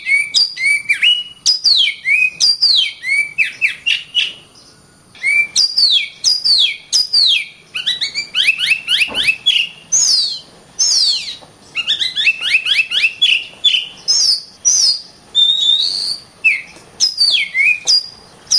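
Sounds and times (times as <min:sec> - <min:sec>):
Oriental magpie-robin song of varied loud whistles: 0:00.0 - 0:18.5.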